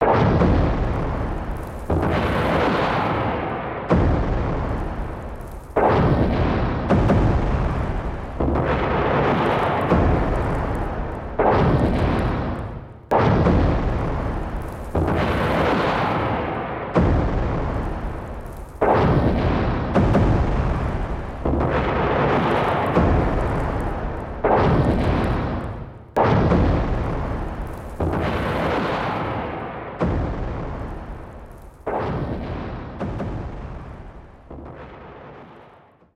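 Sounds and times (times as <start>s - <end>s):
bombing heard from inside: 0.0s - 36.1s.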